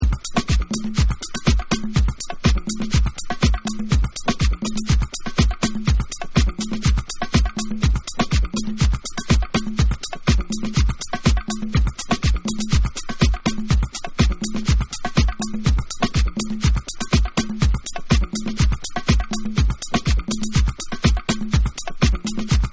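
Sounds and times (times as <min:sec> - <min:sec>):
bonus beats: 0:00.0 - 0:22.7.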